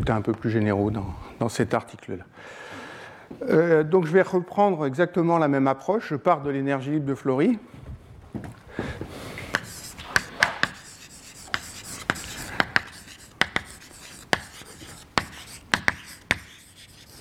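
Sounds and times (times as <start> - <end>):
speech: 0.0 - 9.0
writing an equation on a board: 9.4 - 17.1.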